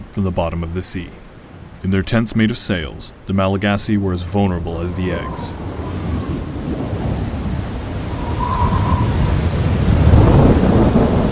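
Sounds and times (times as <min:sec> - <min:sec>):
speech: 0:00.2 - 0:06.0
heavy rain: 0:00.2 - 0:11.3
thin whistle of wind: 0:04.7 - 0:11.1
deep rolling thunder: 0:04.9 - 0:11.3.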